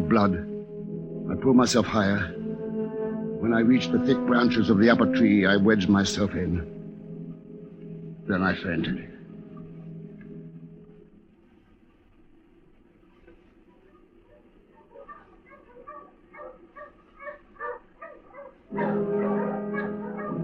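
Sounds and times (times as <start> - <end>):
speech: 0.1 - 0.5, 1.3 - 2.4, 3.4 - 6.8, 8.3 - 9.1, 18.7 - 19.1
dogs barking during a search: 13.9 - 20.4.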